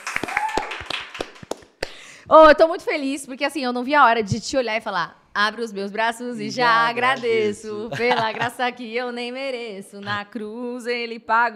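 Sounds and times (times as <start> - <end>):
hand clapping: 0.0 - 2.0
speech: 2.3 - 11.5
laughter: 6.4 - 8.7.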